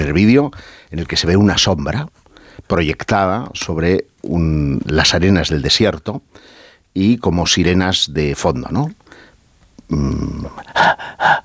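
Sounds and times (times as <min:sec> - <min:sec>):
speech: 0:00.0 - 0:09.0, 0:09.9 - 0:11.4
heavy labored breathing: 0:00.5 - 0:00.9, 0:06.3 - 0:06.9, 0:09.0 - 0:09.4, 0:10.3 - 0:11.4.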